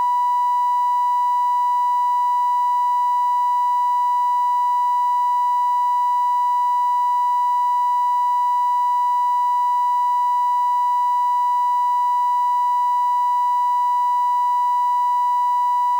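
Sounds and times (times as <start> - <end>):
sine wave tone: 0.0 - 15.9.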